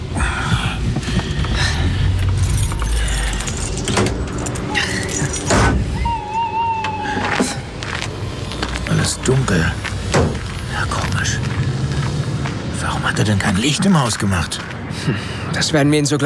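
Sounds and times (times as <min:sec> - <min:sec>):
car pulling up and parking: 0:00.0 - 0:06.2, 0:06.9 - 0:14.9
metallic clinks: 0:02.1 - 0:05.7
speech: 0:13.2 - 0:16.2.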